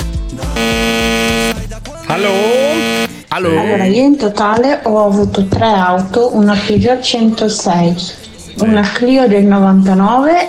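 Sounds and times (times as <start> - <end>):
intercom buzzer: 0.5 - 3.2
speech: 2.1 - 2.6, 3.3 - 10.4.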